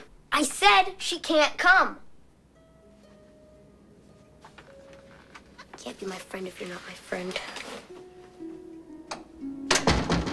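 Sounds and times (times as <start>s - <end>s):
speech: 0.4s - 2.0s, 5.8s - 8.1s
door closing: 9.1s - 10.3s.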